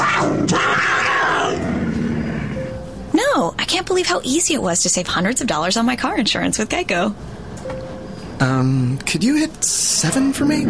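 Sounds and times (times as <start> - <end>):
puma roaring: 0.0 - 2.6
speech: 3.7 - 7.4, 8.4 - 10.6.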